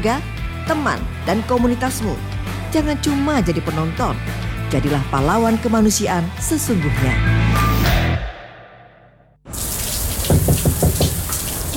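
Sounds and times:
speech: 0.0s - 7.6s
running shower water from a tap: 9.5s - 11.7s.

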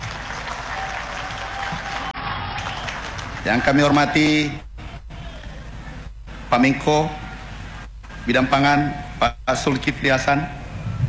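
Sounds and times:
audience applause: 0.0s - 4.5s
speech: 3.4s - 4.6s, 6.5s - 7.2s, 8.2s - 10.6s.

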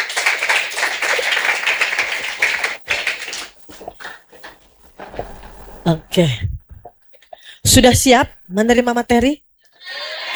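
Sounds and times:
seminar audience applauding a doctor presenting on fighting drug trafficking: 0.0s - 5.9s
speech: 5.9s - 6.5s, 7.7s - 9.4s.

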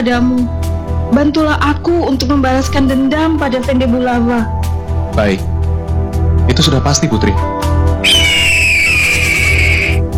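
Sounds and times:
speech: 0.0s - 4.6s, 5.2s - 5.5s, 6.5s - 8.2s
giant mythical eagle screeching: 8.0s - 10.0s.

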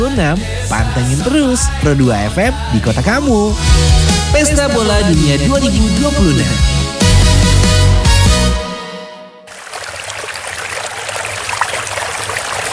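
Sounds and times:
music: 0.0s - 9.5s
speech: 0.1s - 6.8s
flowing water: 9.5s - 12.7s.

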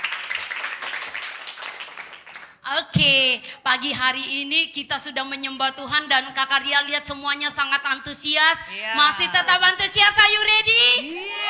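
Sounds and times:
church congregation applause for Jesus during a worship service: 0.0s - 2.6s
speech: 2.7s - 11.4s.

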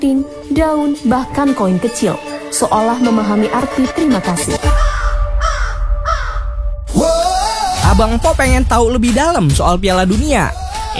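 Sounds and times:
speech: 0.0s - 5.0s, 8.0s - 10.9s
crow cawing: 4.6s - 6.6s.

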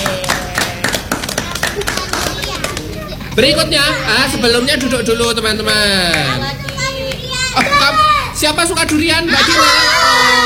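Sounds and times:
children applauding: 0.0s - 2.9s
speech: 3.4s - 6.6s, 7.6s - 10.4s.

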